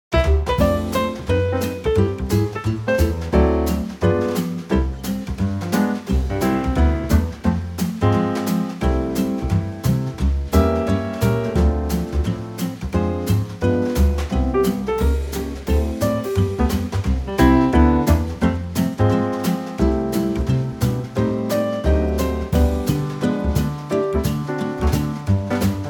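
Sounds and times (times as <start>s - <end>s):
backing track: 0.1s - 25.8s.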